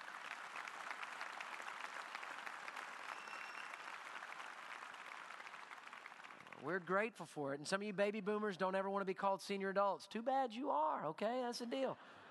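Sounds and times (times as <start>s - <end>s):
audience applause: 0.0s - 7.0s
speech: 6.6s - 12.2s.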